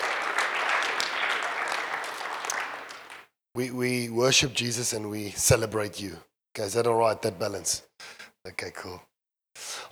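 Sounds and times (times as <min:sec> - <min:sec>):
audience clapping: 0:00.0 - 0:03.3
speech: 0:03.6 - 0:09.1.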